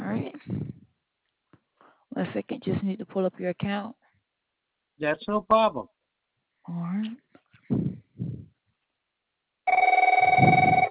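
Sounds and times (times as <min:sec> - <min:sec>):
speech: 0:02.2 - 0:04.0, 0:05.0 - 0:05.9, 0:06.6 - 0:07.8
telephone ringing: 0:09.7 - 0:10.8.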